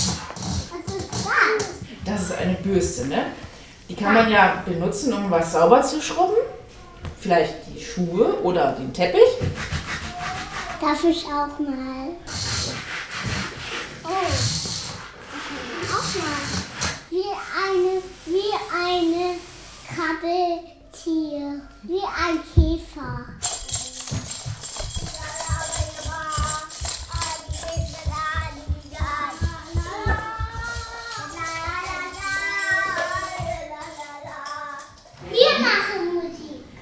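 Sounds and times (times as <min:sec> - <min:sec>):
young children making experimental music in a kindergarten: 0:00.0 - 0:36.7.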